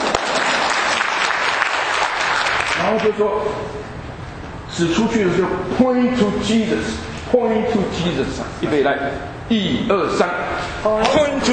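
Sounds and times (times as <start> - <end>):
group applauding performers after a dance routine: 0.0 - 3.0
speech: 2.9 - 4.0, 4.7 - 11.5.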